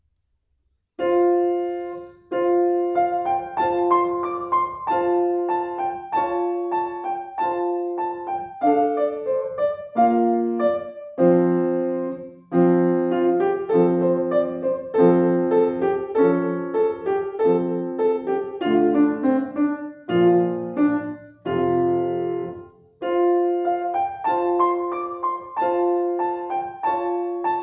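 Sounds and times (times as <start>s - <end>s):
piano playing a Chinese song: 1.0s - 27.6s.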